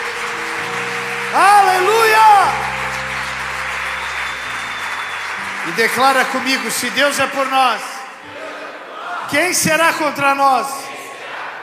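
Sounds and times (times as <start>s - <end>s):
audience applause: 0.0s - 8.2s
speech: 5.8s - 7.9s, 9.3s - 10.8s.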